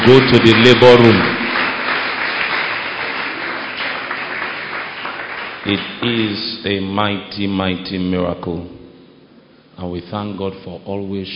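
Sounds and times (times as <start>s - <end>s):
speech: 0.0s - 1.4s, 5.6s - 8.8s, 9.8s - 11.3s
church congregation clapping after the welcome of a newborn: 0.0s - 6.6s.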